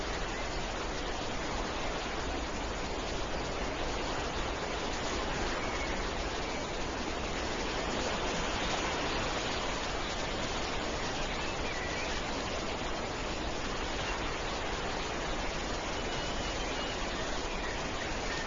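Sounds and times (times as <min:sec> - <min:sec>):
wind: 0:00.0 - 0:18.4.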